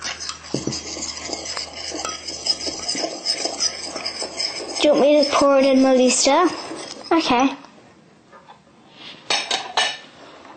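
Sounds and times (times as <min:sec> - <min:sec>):
spoon stirring baking soda into milk in a bowl: 0:00.0 - 0:07.7
speech: 0:04.8 - 0:07.6.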